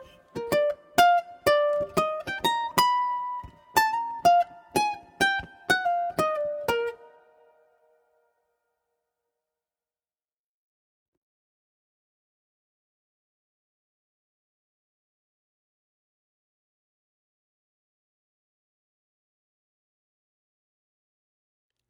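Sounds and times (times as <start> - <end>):
ukulele: 0.0 - 8.1.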